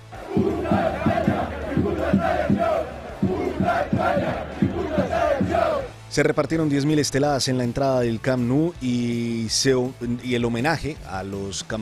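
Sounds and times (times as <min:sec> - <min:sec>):
football crowd chanting at Camp Nou stadium: 0:00.0 - 0:06.0
speech: 0:06.2 - 0:11.8.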